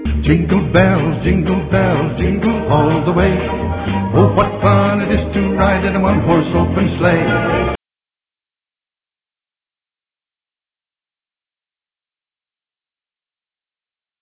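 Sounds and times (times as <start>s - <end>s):
Christmas song: 0.0s - 7.8s.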